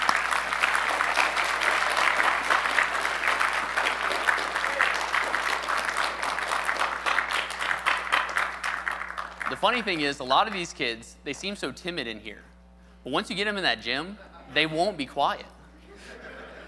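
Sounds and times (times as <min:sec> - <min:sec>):
audience applause: 0:00.0 - 0:10.0
speech: 0:09.6 - 0:16.2
laughter: 0:14.1 - 0:14.7, 0:15.6 - 0:16.6.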